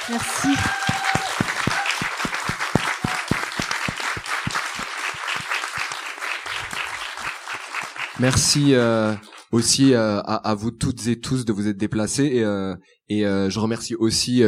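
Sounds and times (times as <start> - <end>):
audience applause: 0.0 - 9.4
speech: 0.1 - 0.9, 8.2 - 14.4.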